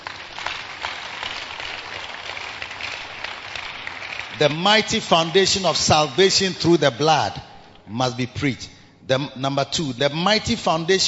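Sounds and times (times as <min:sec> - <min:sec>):
audience clapping: 0:00.0 - 0:05.7
speech: 0:04.4 - 0:11.0.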